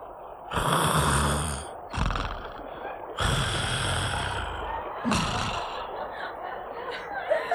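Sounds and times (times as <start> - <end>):
young huntsman snoring in deep sleep: 0.5 - 2.6, 3.2 - 5.9
laughter: 2.4 - 7.5.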